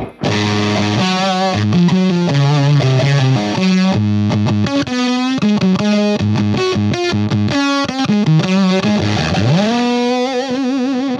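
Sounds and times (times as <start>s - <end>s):
electric guitar through a Jext Telez Dizzy Tone gated fuzz pedal: 0.0s - 11.1s.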